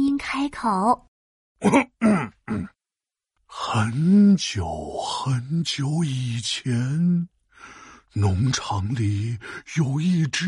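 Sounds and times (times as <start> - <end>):
speech: 0.3 - 2.7, 3.5 - 10.4
throat clearing: 1.6 - 2.8.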